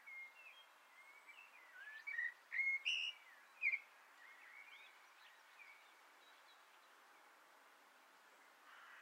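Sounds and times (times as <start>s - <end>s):
Common blackbird singing from an antenna: 0.1s - 6.4s.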